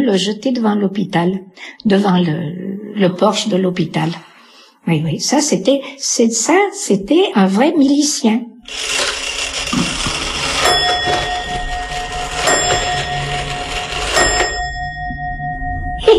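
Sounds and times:
speech: 0.0 - 9.9
old Swiss pendulum clock chiming: 8.7 - 16.1.

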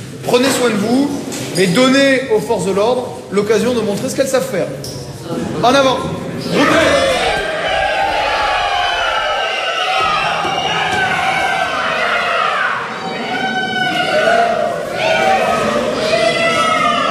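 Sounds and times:
speech: 0.2 - 7.2
police trainees playing rioters shouting during crowd-control training: 6.4 - 17.0.

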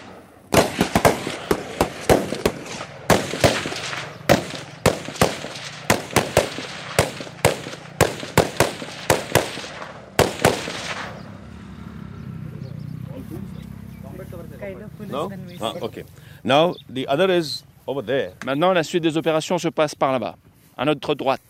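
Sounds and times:
gunfire from motorcycle patrol rider: 0.0 - 11.5
speech: 15.2 - 21.4.

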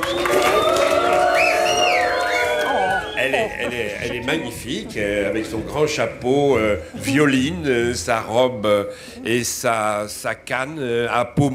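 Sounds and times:
crowd cheering with whoops: 0.0 - 4.6
crowd applauding: 0.0 - 5.2
laughter: 2.6 - 9.7
speech: 3.2 - 11.5.

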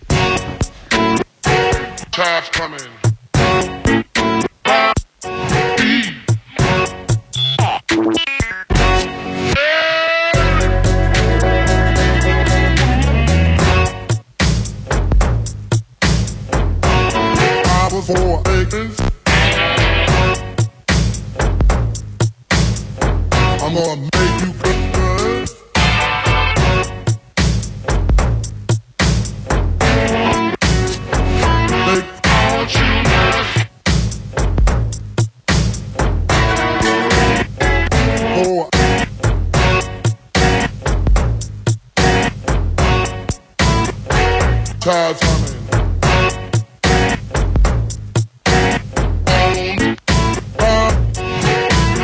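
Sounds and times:
blues music: 0.0 - 52.0.

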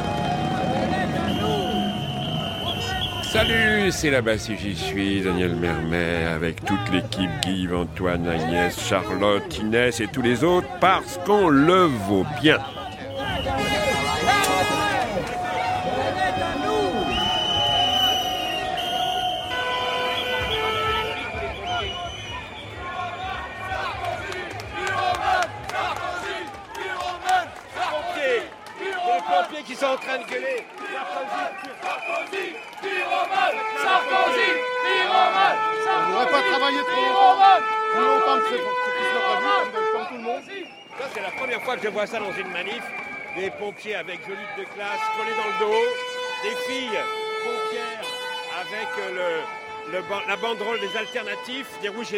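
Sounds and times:
crowd shouting: 0.0 - 4.0, 8.1 - 43.3
speech: 3.3 - 12.8, 42.0 - 48.0, 48.7 - 52.1.

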